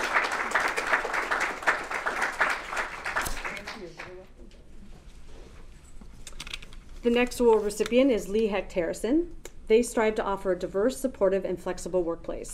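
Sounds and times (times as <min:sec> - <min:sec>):
crowd applauding: 0:00.0 - 0:04.2
speech: 0:07.0 - 0:12.5.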